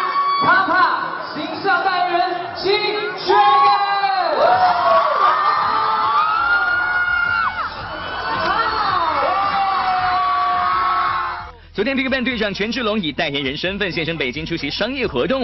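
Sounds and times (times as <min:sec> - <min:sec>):
crowd screaming at celebrity appearance: 0:00.0 - 0:11.5
speech: 0:00.7 - 0:05.4, 0:11.8 - 0:15.4.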